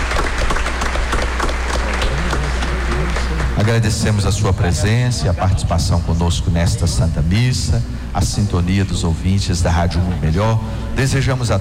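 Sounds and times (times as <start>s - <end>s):
audience applause: 0.0s - 5.0s
speech: 3.7s - 11.5s.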